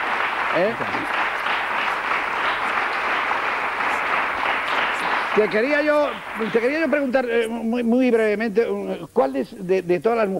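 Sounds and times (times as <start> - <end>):
audience ovation applause: 0.0 - 7.5
speech: 0.5 - 1.3, 5.4 - 10.3.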